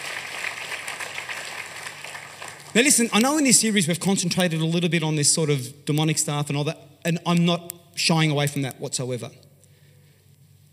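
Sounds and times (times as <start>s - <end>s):
audience applause: 0.0s - 3.1s
speech: 2.8s - 9.5s.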